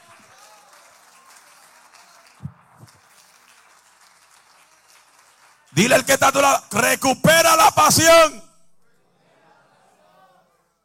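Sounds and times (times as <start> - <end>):
audience applause: 0.0 - 6.1
speech: 5.8 - 8.4.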